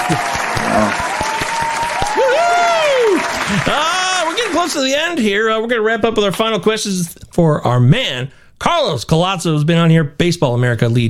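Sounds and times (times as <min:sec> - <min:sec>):
applause: 0:00.0 - 0:05.2
speech: 0:00.1 - 0:01.3, 0:03.5 - 0:11.0.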